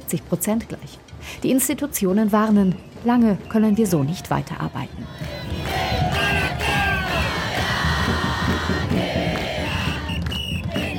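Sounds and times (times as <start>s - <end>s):
speech: 0.1s - 5.6s
huge protest crowd chanting and shouting: 3.8s - 10.9s.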